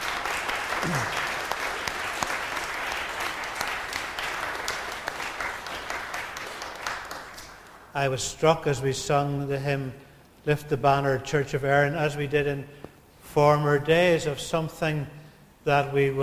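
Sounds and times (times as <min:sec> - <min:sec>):
audience applause for confirmation candidates: 0:00.0 - 0:07.9
speech: 0:00.8 - 0:01.2, 0:08.0 - 0:16.2.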